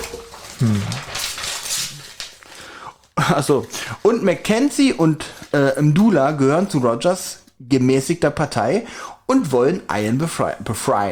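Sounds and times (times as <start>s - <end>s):
page turning: 0.0s - 6.4s
speech: 0.6s - 1.1s, 3.3s - 11.1s.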